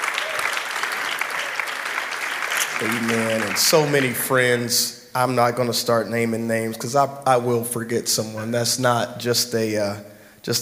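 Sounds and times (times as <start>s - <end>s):
audience applause: 0.0s - 4.5s
speech: 2.8s - 10.5s.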